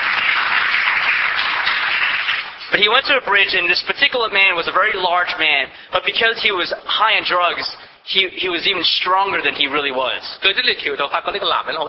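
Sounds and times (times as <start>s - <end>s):
audience applause for a speaker's story: 0.0s - 2.6s
speech: 2.7s - 11.8s.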